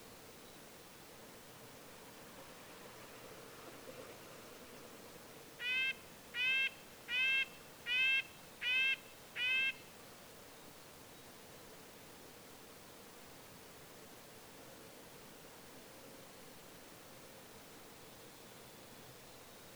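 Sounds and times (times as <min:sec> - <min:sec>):
red-breasted nuthatch nasal horn-like calls: 0:05.6 - 0:09.8.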